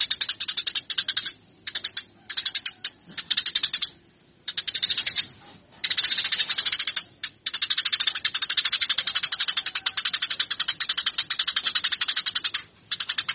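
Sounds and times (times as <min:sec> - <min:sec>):
Eurasian tree sparrow chirping: 0:00.0 - 0:13.3.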